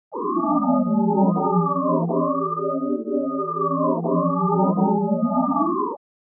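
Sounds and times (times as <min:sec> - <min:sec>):
sine tone: 0:00.1 - 0:06.0.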